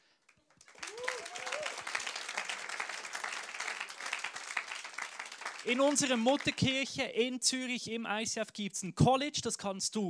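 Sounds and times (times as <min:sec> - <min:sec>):
audience applause: 0:00.5 - 0:06.7
speech: 0:05.6 - 0:10.0.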